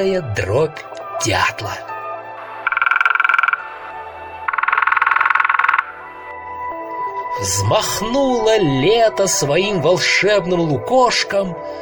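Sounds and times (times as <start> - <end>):
speech: 0.0 - 1.9, 7.4 - 11.8
frogs croaking: 2.6 - 7.7.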